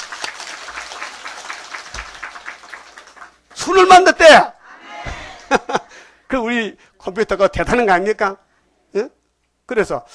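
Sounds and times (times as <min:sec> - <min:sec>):
audience applause: 0:00.0 - 0:03.6
speech: 0:03.6 - 0:04.5, 0:06.3 - 0:10.1.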